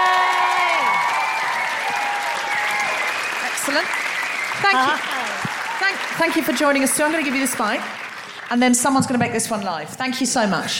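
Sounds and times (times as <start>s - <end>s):
audience applause: 0.0s - 9.8s
speech: 3.7s - 4.0s, 4.6s - 5.2s, 6.2s - 10.7s.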